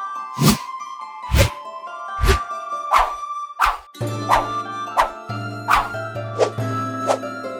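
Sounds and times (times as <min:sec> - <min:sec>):
combat and fight sounds: 0:00.4 - 0:00.7, 0:01.3 - 0:01.6, 0:02.2 - 0:02.4, 0:03.0 - 0:07.2.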